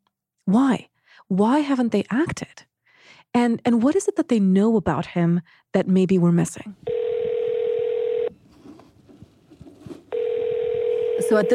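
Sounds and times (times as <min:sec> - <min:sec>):
speech: 0:00.4 - 0:02.7, 0:03.3 - 0:07.0, 0:11.3 - 0:11.5
telephone dial tone: 0:06.9 - 0:08.4, 0:10.1 - 0:11.5
faint clicks and rustle: 0:08.4 - 0:10.8.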